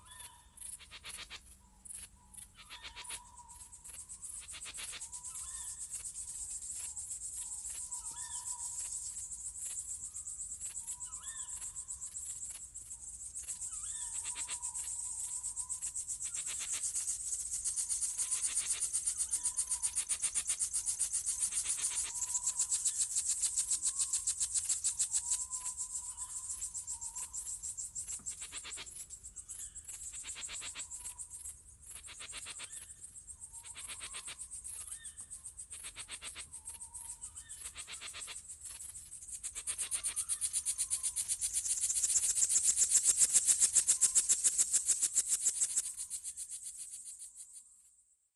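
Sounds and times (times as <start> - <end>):
owls on a summer night: 0.0 - 6.0, 6.8 - 9.0, 10.6 - 12.2, 13.4 - 17.0, 17.9 - 27.5, 28.1 - 31.4, 32.0 - 44.4
crickets on a summer night: 0.0 - 48.3.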